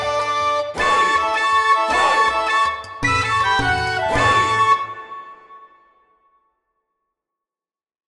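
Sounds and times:
tavern music: 0.0 - 5.8.

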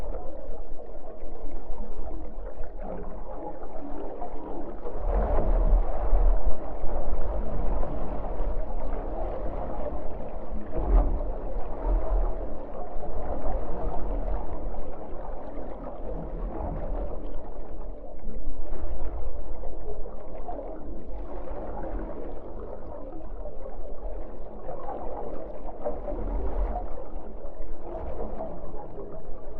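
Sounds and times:
designed underwater boat ride in the ocean: 0.0 - 29.5.

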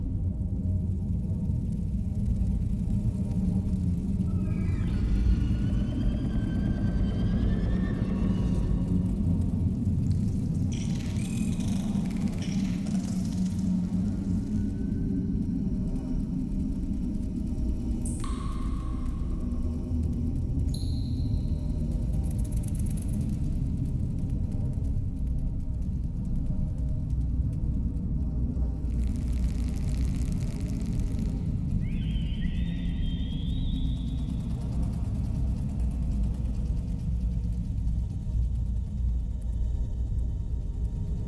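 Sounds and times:
spiders cave ambience: 0.1 - 41.2.

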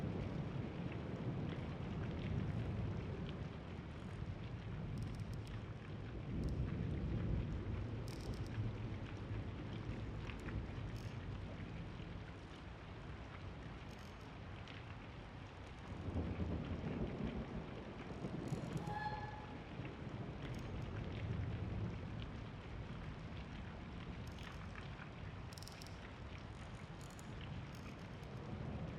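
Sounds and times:
rain at an abandoned mansion: 0.0 - 28.9.

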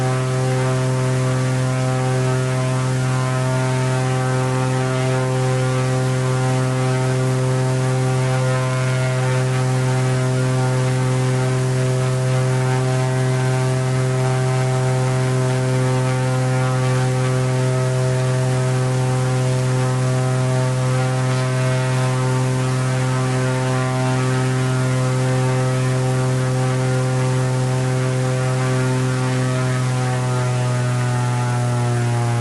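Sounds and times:
Extra 300 onboard engine starting, idling and revving: 0.0 - 32.3.

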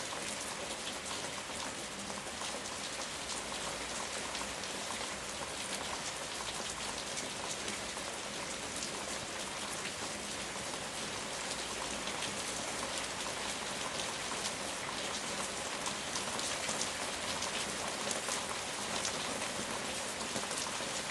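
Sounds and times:
heavy rain: 0.0 - 21.1.

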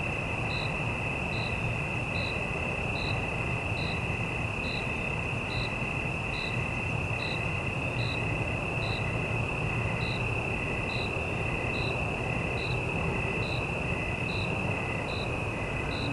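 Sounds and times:
single cricket chirping in the city at night: 0.0 - 16.1.

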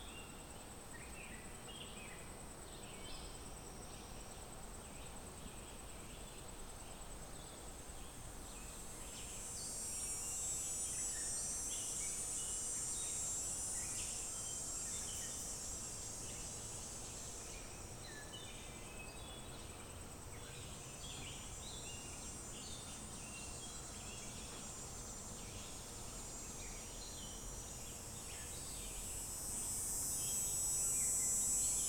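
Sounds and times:
calm forest ambience: 0.0 - 31.8.

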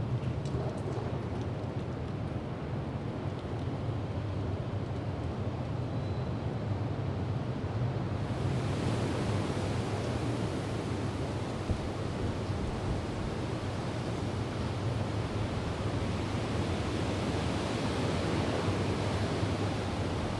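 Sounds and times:
hurricane winds through trees: 0.0 - 20.3.

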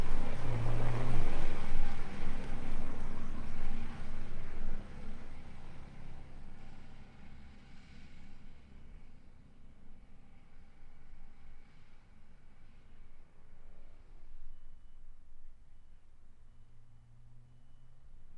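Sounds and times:
tank driving, stopping and revving: 0.0 - 6.9.

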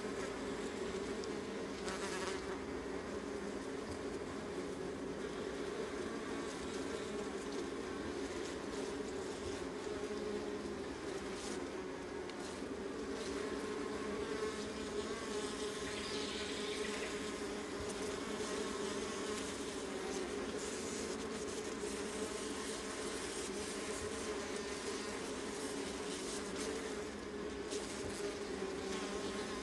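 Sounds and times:
honey bee colony drone: 0.0 - 29.6.

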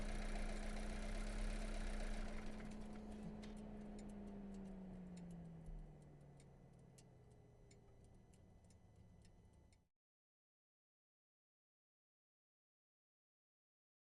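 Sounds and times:
VW Golf engine during fast drive recorded onboard: 0.0 - 9.7.

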